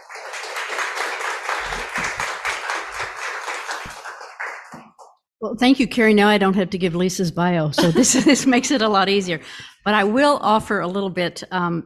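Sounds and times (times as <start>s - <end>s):
audience applause at an American Writers Museum evening: 0.0s - 5.1s
speech: 5.4s - 11.8s
laughter: 7.8s - 9.1s.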